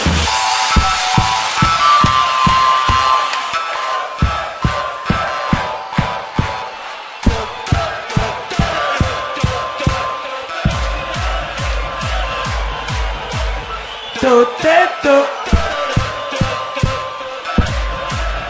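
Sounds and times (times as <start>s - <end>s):
audience at the BAGROL Protector event in Uniejów clapping along: 0.0s - 18.4s
crowd shouting: 0.0s - 18.4s
music: 0.0s - 18.4s.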